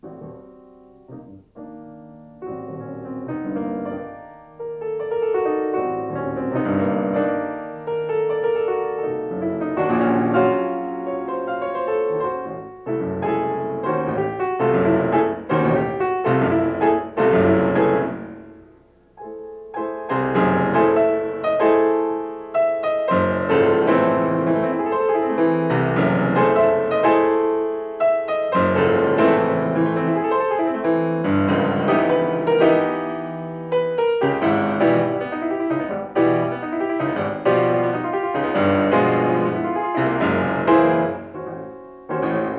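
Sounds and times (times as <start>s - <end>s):
piano piece: 0.0s - 42.5s.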